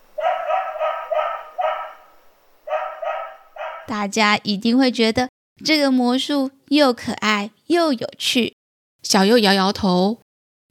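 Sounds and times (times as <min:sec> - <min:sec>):
small dog barking: 0:00.2 - 0:03.9
speech: 0:03.9 - 0:10.2.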